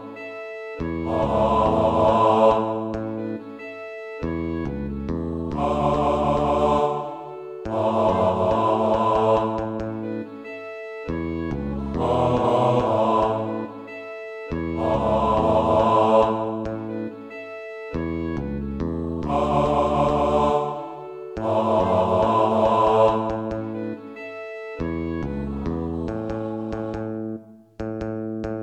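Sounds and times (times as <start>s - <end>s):
bass: 0.8s - 3.5s, 4.2s - 7.0s, 7.6s - 10.3s, 11.1s - 13.8s, 14.5s - 17.2s, 18.0s - 20.7s, 21.4s - 24.1s, 24.8s - 28.6s.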